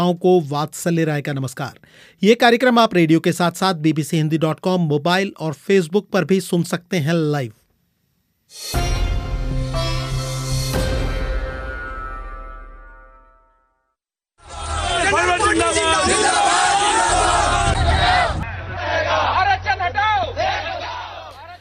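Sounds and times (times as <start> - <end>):
speech: 0.0 - 7.6, 8.5 - 9.0
resonant musical chord: 8.6 - 13.7
protest crowd shouting and chanting slogans: 14.4 - 21.4.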